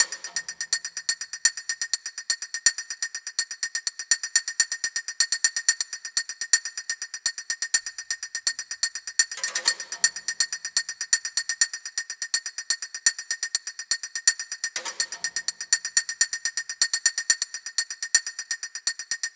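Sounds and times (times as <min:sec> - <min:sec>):
rooftop percussion music: 0:00.0 - 0:19.3.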